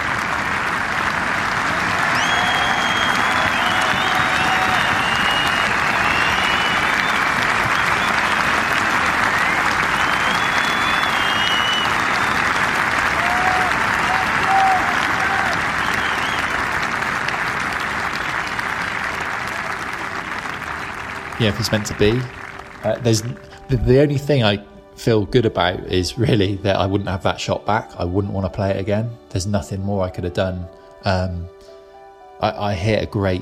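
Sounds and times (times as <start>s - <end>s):
golf crowd applauding: 0.0s - 23.8s
whistles and cheers: 1.4s - 21.3s
speech: 21.4s - 31.6s, 32.4s - 33.4s.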